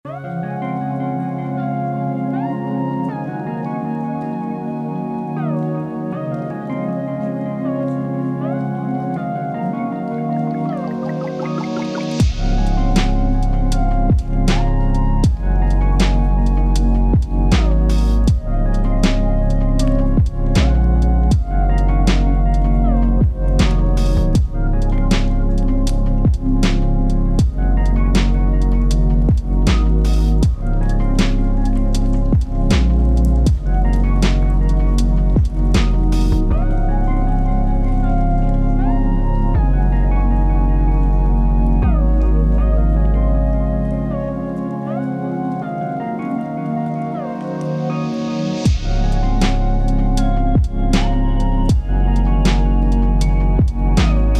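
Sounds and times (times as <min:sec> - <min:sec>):
instrumental music: 0:00.1 - 0:54.3.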